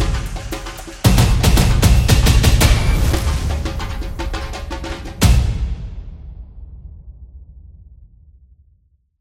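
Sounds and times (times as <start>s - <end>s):
samba music: 0.0s - 6.0s.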